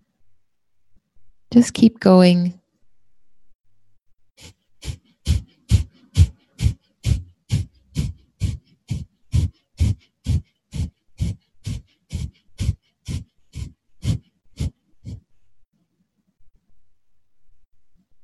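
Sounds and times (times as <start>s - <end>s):
speech: 1.5s - 2.6s
fast belly-pumping breathing through the nostrils: 4.4s - 15.6s.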